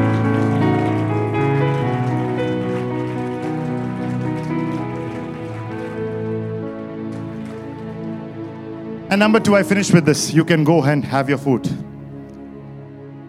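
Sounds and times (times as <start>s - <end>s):
audience clapping: 0.0s - 9.5s
speech: 9.2s - 11.9s.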